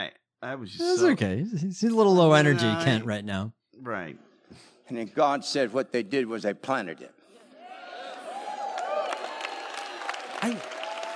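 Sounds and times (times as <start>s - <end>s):
speech: 0.5s - 7.2s, 10.4s - 10.7s
audience applause: 8.1s - 11.1s.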